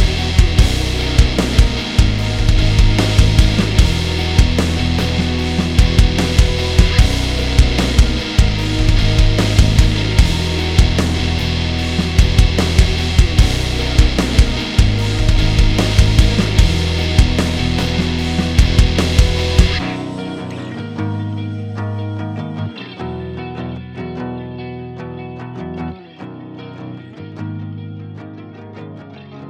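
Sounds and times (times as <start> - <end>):
drum kit loop: 0.0 - 20.2.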